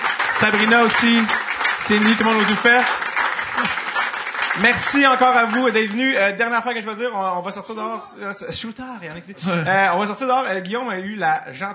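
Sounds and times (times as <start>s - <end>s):
audience applause: 0.0s - 6.2s
speech: 0.4s - 3.0s, 4.6s - 11.7s.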